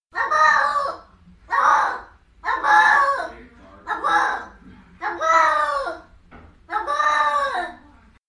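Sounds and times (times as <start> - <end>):
cat screaming: 0.2 - 6.0, 6.7 - 7.8.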